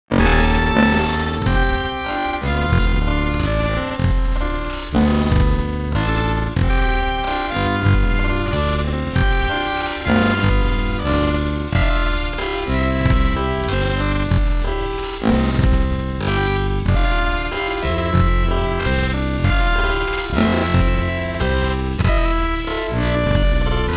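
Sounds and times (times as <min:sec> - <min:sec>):
jazz music: 0:00.1 - 0:23.9.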